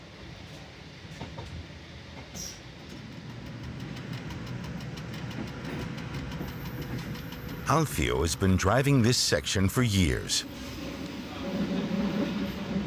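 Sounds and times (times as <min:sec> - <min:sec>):
train running along a railway line past vineyards: 0:00.0 - 0:09.5, 0:10.2 - 0:12.8
wheels clicking on rails: 0:02.2 - 0:07.7
speech: 0:07.7 - 0:10.7.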